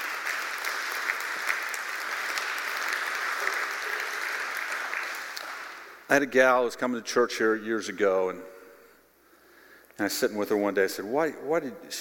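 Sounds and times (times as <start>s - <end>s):
audience clapping: 0.0s - 6.1s
speech: 6.1s - 8.5s, 10.0s - 11.9s.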